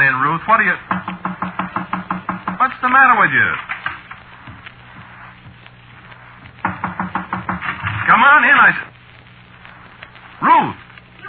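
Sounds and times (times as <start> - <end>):
speech: 0.2 - 1.4, 2.8 - 3.8, 8.1 - 8.9, 10.4 - 10.8
knocking on a door: 0.9 - 2.6, 6.6 - 8.0.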